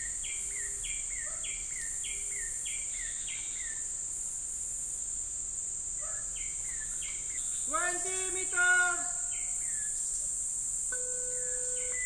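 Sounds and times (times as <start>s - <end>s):
birds: 0.0s - 3.9s, 6.0s - 10.3s, 11.0s - 12.0s.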